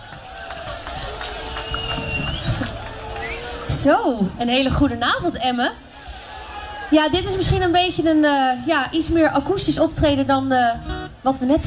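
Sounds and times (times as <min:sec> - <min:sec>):
audience applause and cheering: 0:00.0 - 0:04.0
speech: 0:03.8 - 0:05.8, 0:06.9 - 0:11.6.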